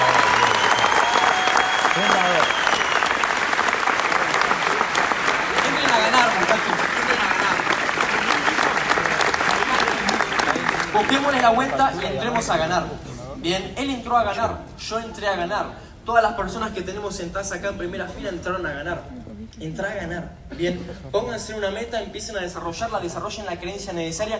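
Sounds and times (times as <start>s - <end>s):
loud audience applause: 0.0s - 12.4s
speech: 11.5s - 24.3s.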